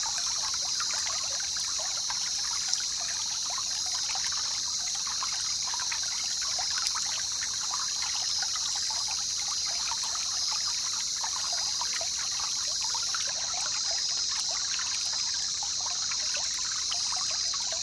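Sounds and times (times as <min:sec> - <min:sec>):
wilderness jungle river in a rainforest: 0:00.0 - 0:17.8.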